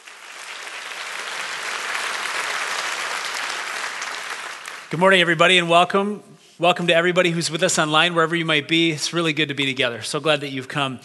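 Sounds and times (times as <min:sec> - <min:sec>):
church audience applause welcoming a pastor: 0:00.0 - 0:05.0
speech: 0:04.9 - 0:11.0.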